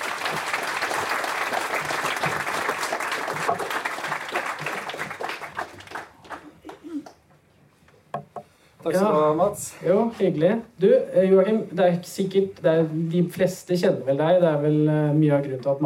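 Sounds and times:
audience applause: 0:00.0 - 0:07.1
speech: 0:08.9 - 0:15.8.

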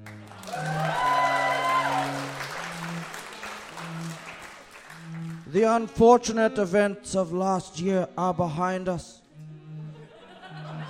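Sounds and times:
audience applause: 0:00.0 - 0:06.0
low musical tones: 0:00.0 - 0:10.8
speech: 0:05.5 - 0:09.2
laughter: 0:09.9 - 0:10.8.

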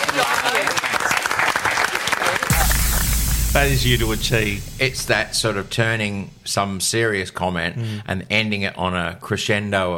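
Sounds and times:
studio audience applause: 0:00.0 - 0:03.0
burst of noise: 0:02.5 - 0:07.0
speech: 0:03.6 - 0:09.9.

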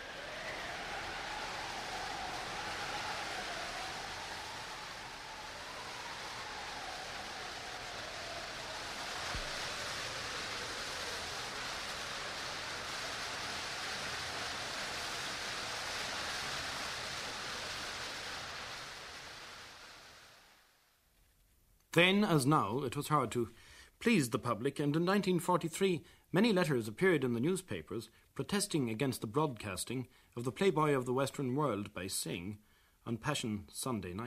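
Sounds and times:
thundering roar of a waterfall: 0:00.0 - 0:20.7
shrill whistling wind of a raging storm: 0:00.0 - 0:20.8
speech: 0:22.0 - 0:34.2.

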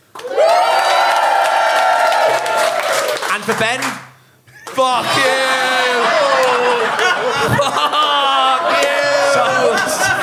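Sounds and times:
crowd cheering for a contestant: 0:00.1 - 0:03.8, 0:04.7 - 0:10.2
scattered clapping: 0:00.1 - 0:04.8
speech: 0:03.5 - 0:04.1, 0:04.8 - 0:05.6
laughter: 0:04.5 - 0:10.2.

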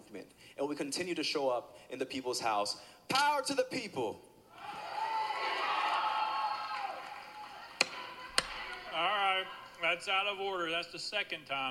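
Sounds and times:
speech: 0:00.6 - 0:04.3, 0:09.0 - 0:11.6
gallery crowd cheering and yelling: 0:04.5 - 0:10.3.

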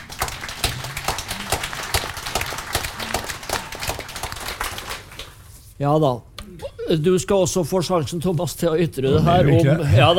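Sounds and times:
audience applause: 0:00.0 - 0:05.4
speech: 0:05.8 - 0:06.3, 0:06.9 - 0:10.1.

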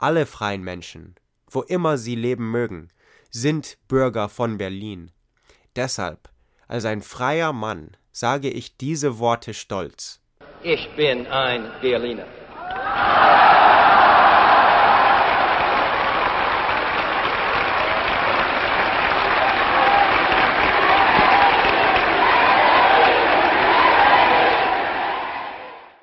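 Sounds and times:
speech: 0:00.0 - 0:05.2, 0:05.8 - 0:12.4
crowd applauding after a speech: 0:12.6 - 0:26.0.

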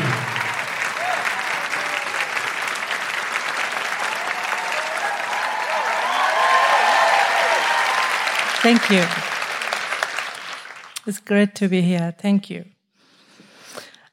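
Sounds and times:
audience applause at a live show in Canberra: 0:00.0 - 0:11.0
speech: 0:08.6 - 0:09.2, 0:11.1 - 0:12.7.

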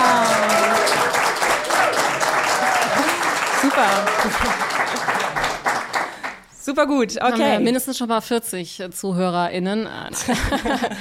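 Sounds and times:
voices calling out and cheering: 0:00.0 - 0:04.5
live audience applauding: 0:00.0 - 0:06.5
laughter: 0:02.6 - 0:05.6, 0:10.2 - 0:10.9
speech: 0:06.7 - 0:10.9.

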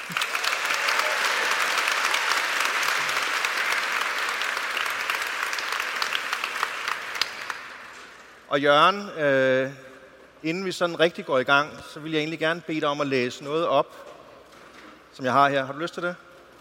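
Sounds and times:
audience applause for two guests at a Danish stage event: 0:00.0 - 0:08.2
speech: 0:00.1 - 0:00.3, 0:08.5 - 0:14.1, 0:15.2 - 0:16.3.

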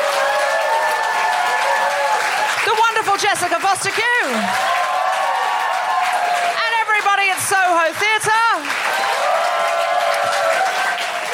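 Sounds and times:
faint cheering: 0:00.0 - 0:02.6, 0:04.2 - 0:06.6, 0:08.6 - 0:11.3
crowd applauding: 0:00.0 - 0:11.3.

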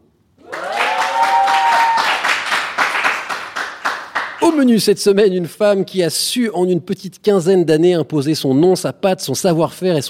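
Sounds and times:
studio audience applauding and cheering: 0:00.4 - 0:04.4
speech: 0:04.5 - 0:10.0.

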